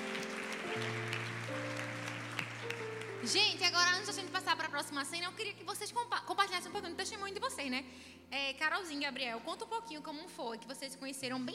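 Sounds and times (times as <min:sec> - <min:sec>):
audience applause: 0:00.0 - 0:04.1
speech: 0:00.8 - 0:01.0, 0:03.2 - 0:11.5.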